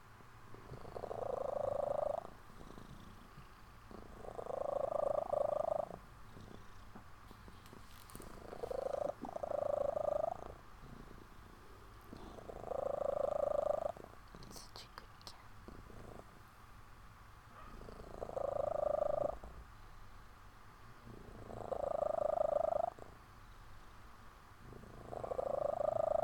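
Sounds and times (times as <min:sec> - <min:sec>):
kitten purring: 0:00.5 - 0:16.4, 0:17.6 - 0:19.7, 0:21.0 - 0:23.2, 0:24.6 - 0:26.2.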